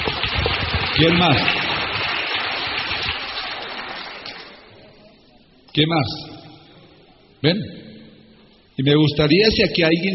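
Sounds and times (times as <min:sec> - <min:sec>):
crowd applause: 0:00.0 - 0:04.7
speech: 0:01.0 - 0:01.6, 0:05.8 - 0:06.3, 0:07.4 - 0:07.8, 0:08.8 - 0:10.1.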